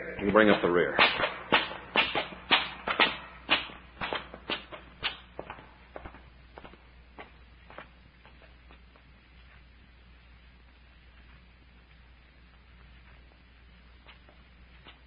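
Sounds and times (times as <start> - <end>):
footsteps climbing a long flight of steps: 0.0 - 9.7, 14.0 - 15.0
speech: 0.2 - 1.2.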